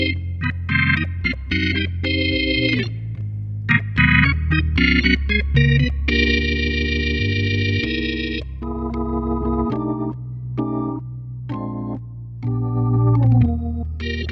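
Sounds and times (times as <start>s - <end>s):
jazz ballad on digital piano: 0.0s - 3.1s, 3.7s - 14.2s.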